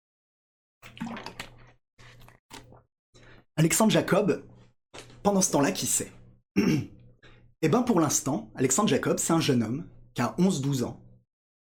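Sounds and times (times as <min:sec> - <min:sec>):
person drinking a sip of water: 0:00.8 - 0:03.4
speech: 0:00.9 - 0:01.4, 0:03.6 - 0:04.5, 0:05.2 - 0:07.0, 0:07.6 - 0:11.0.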